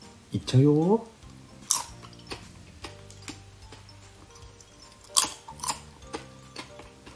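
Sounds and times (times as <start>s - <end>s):
speech: 0.3s - 1.1s
thin dried bonito chips being chewed: 1.7s - 3.4s, 5.0s - 7.1s.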